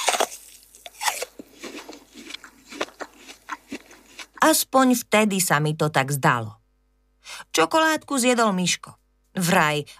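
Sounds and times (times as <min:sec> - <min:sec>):
biting and chewing a crisp apple: 0:00.0 - 0:04.7
speech: 0:04.4 - 0:06.6, 0:07.6 - 0:09.9.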